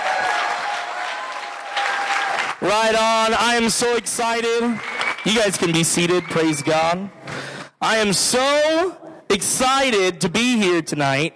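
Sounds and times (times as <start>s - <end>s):
crowd applause: 0.0s - 2.7s, 4.6s - 6.8s
speech: 2.6s - 7.2s, 7.8s - 11.3s.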